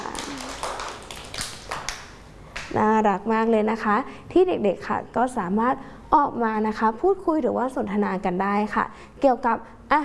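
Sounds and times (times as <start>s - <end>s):
children at school clapping for a classmate: 0.0s - 2.7s
speech: 2.7s - 10.0s.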